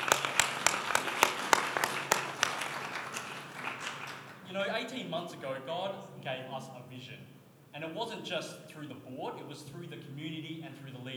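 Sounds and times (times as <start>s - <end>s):
audience applause: 0.0s - 4.8s
speech: 5.0s - 11.1s.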